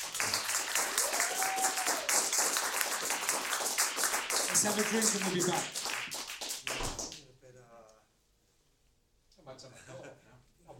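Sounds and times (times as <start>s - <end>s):
audience applause: 0.0s - 7.2s
speech: 4.6s - 5.8s.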